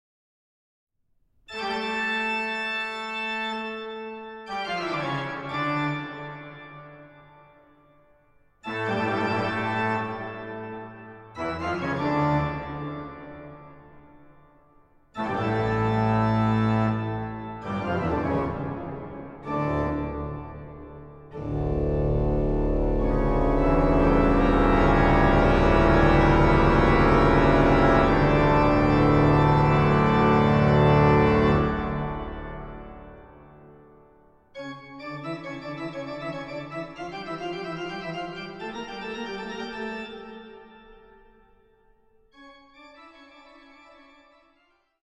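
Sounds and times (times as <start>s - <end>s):
organ piece: 1.5s - 7.7s, 8.6s - 14.3s, 15.2s - 41.6s, 42.3s - 44.6s.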